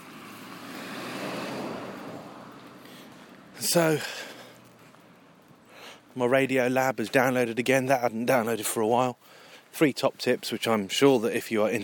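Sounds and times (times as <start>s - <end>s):
car passing by: 0.0s - 5.6s
speech: 3.6s - 4.3s, 6.2s - 11.8s.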